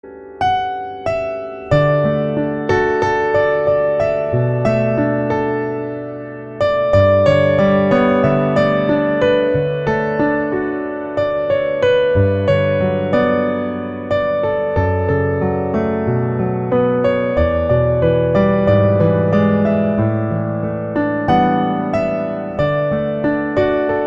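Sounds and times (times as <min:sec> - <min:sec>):
piano: 0:00.0 - 0:24.0.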